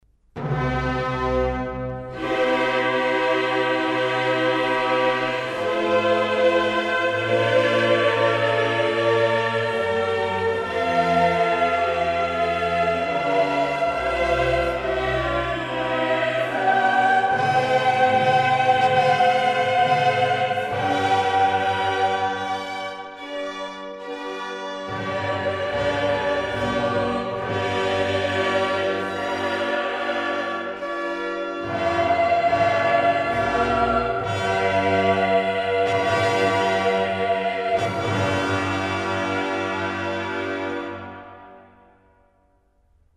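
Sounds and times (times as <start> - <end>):
mass in C minor: 0.3 - 42.7.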